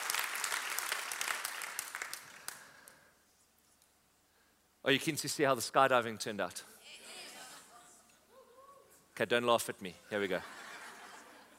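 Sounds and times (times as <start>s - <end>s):
audience applause: 0.0s - 2.7s
speech: 4.8s - 6.7s, 9.2s - 10.6s
laughter: 10.2s - 11.5s.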